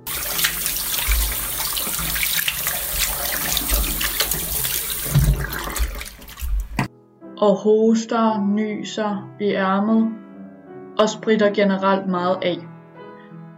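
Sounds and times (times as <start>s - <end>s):
washing hands under running tap: 0.0s - 6.9s
speech: 7.4s - 10.2s, 11.0s - 12.7s.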